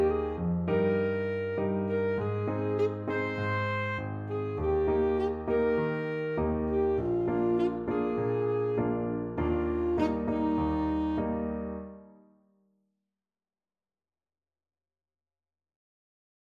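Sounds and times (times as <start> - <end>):
alto saxophone: 0.0 - 12.0.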